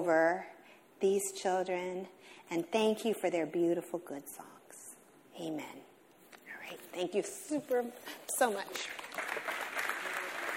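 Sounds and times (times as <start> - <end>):
speech: 0.0 - 4.6, 5.4 - 5.9, 6.7 - 9.5
applause: 8.6 - 10.5.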